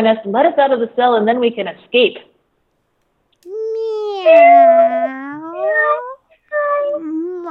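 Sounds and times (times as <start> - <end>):
speech: 0.0 - 2.3, 4.2 - 6.0
person imitating a cat's meow: 3.5 - 7.4.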